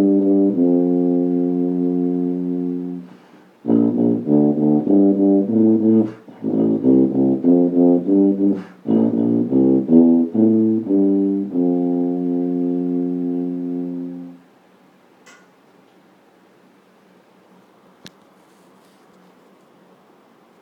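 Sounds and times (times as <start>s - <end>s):
tuba playing: 0.0s - 14.5s.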